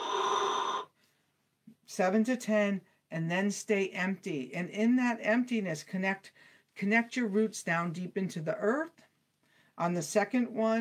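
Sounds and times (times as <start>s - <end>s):
whistling exhale through pursed lips: 0.0s - 0.9s
speech: 1.9s - 9.1s, 9.8s - 10.7s.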